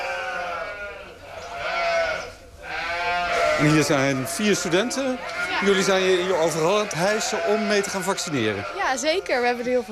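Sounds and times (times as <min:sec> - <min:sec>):
sheep bleating in a stable: 0:00.0 - 0:09.9
speech: 0:03.6 - 0:09.9.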